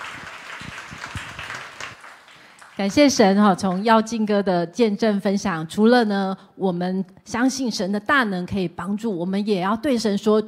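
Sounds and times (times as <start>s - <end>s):
congregation clapping during a church service: 0.0s - 3.8s
speech: 2.8s - 10.4s.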